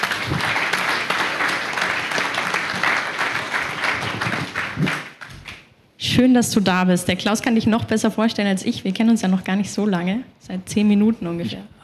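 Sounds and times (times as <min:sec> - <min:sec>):
audience applause: 0:00.0 - 0:05.6
speech: 0:06.2 - 0:11.8.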